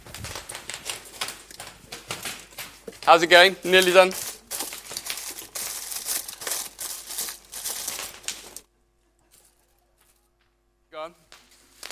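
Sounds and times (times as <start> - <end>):
bubble wrap crackling and popping: 0.0 - 8.7, 11.4 - 11.8
speech: 3.1 - 4.3.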